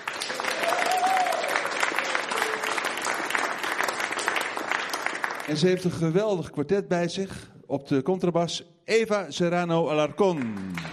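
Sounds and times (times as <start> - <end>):
audience applause: 0.0 - 5.6, 10.3 - 10.9
faint whoop or cheer: 0.5 - 1.6
speech: 5.5 - 10.9.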